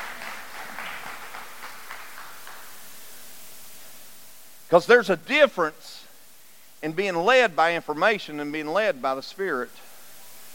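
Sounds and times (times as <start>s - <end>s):
audience hand clapping: 0.0s - 3.3s
speech: 4.7s - 6.0s, 6.8s - 9.9s.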